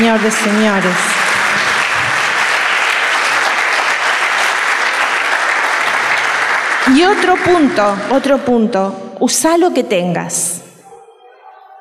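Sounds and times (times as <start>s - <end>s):
audience applause: 0.0s - 8.2s
speech: 0.1s - 1.2s, 6.9s - 10.5s.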